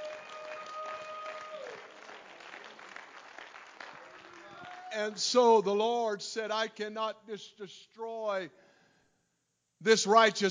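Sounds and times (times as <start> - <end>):
audience clapping hands: 0.0 - 5.2
speech: 5.0 - 8.6, 9.8 - 10.4.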